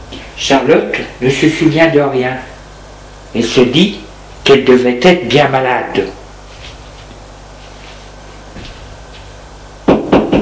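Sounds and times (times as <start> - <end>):
speech: 0.4 - 2.5, 3.3 - 6.2
knocking on a door: 9.8 - 10.4.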